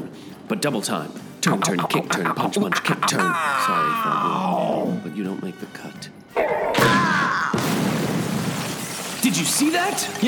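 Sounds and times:
speech: 0.5s - 7.0s, 9.2s - 10.2s
heavy body thrown and smashing into wall: 6.8s - 8.8s.

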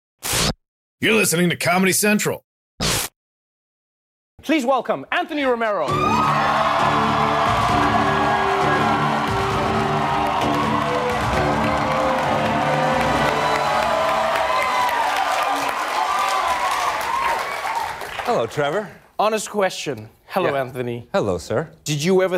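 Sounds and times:
speech: 1.0s - 2.5s, 4.4s - 7.0s, 18.3s - 22.3s
studio audience applause: 5.9s - 18.9s.

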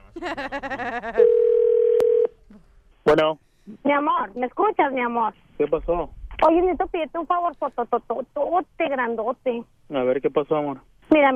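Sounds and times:
laughter: 0.0s - 1.3s
speech: 0.2s - 1.7s, 3.0s - 11.3s
telephone dial tone: 1.2s - 2.3s.

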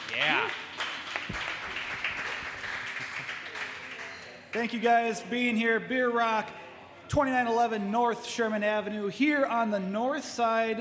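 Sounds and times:
audience applause: 0.0s - 4.2s
speech: 4.6s - 10.8s.

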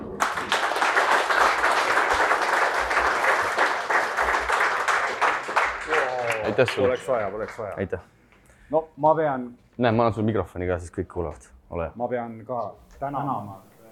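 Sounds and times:
audience applause: 0.0s - 7.8s
speech: 6.6s - 13.9s.

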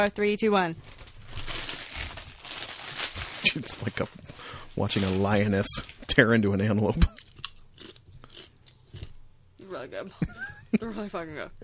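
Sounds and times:
speech: 0.0s - 1.0s, 3.5s - 7.2s, 9.8s - 11.6s
crinkly plastic snack bag torn open: 0.8s - 8.5s.

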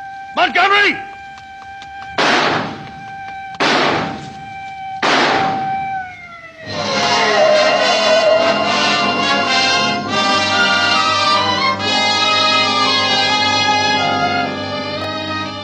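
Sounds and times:
speech: 0.4s - 1.1s
gunshots: 2.2s - 2.9s, 3.6s - 4.4s, 5.0s - 5.9s
harsh continuous noisy roar: 5.0s - 15.6s.

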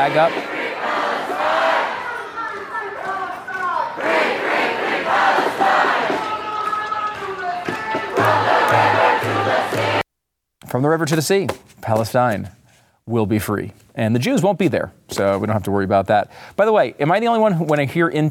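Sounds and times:
speech: 0.0s - 1.5s, 10.7s - 18.2s
protest crowd chanting: 0.0s - 10.1s.

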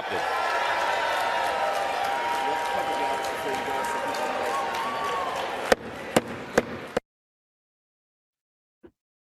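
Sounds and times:
applause: 0.0s - 5.8s
large crowd shouting and cheering: 0.0s - 7.0s.

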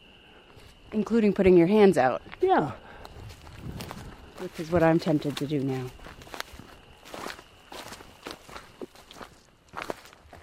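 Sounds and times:
speech: 0.9s - 2.8s, 4.4s - 6.2s
footsteps walking on a trail: 2.2s - 10.4s.

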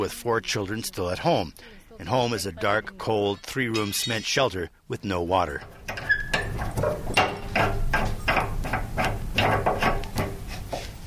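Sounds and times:
speech: 0.0s - 5.8s
water tap being opened: 5.6s - 10.5s.

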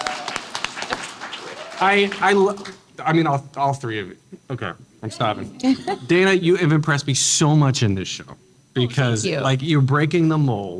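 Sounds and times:
crowd applauding: 0.0s - 2.8s
speech: 1.8s - 10.7s.

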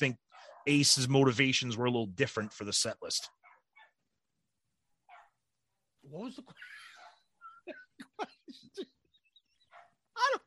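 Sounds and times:
speech: 0.0s - 3.4s, 6.0s - 6.8s, 7.7s - 9.0s
dog barking outside: 0.2s - 0.8s, 3.2s - 4.0s, 5.0s - 5.4s, 6.8s - 7.3s, 9.6s - 10.1s.

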